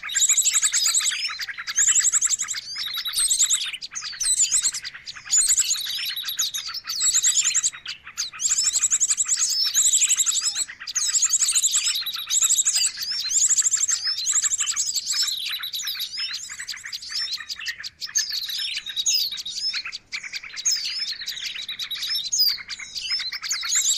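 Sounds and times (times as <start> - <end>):
birds chirping as a lure: 0.0 - 23.9.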